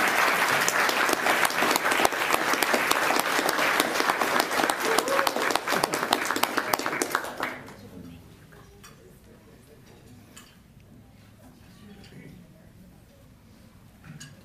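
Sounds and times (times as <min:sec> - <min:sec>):
audience applause: 0:00.0 - 0:07.8.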